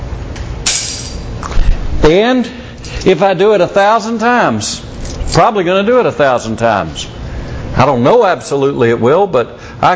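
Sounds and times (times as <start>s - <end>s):
bunch of keys dropping and jangling: 0.7s - 1.3s
speech: 2.1s - 9.9s.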